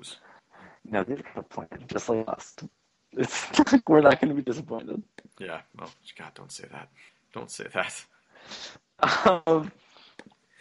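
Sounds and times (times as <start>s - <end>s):
speech: 0.0s - 0.2s, 0.8s - 9.8s
short breathy intake: 8.4s - 8.8s.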